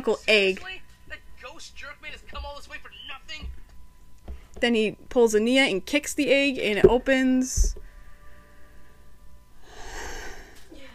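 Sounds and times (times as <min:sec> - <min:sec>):
speech: 0:00.0 - 0:00.8, 0:04.6 - 0:07.8
deep breath after a long stretch of talking: 0:09.6 - 0:10.7.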